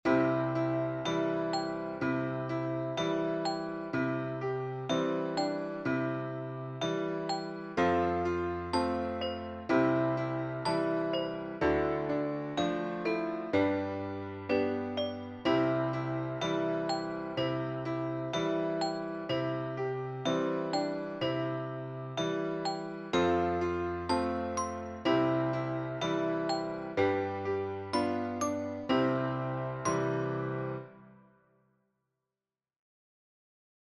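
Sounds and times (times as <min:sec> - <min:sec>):
Christmas song accompaniment: 0:00.0 - 0:31.3.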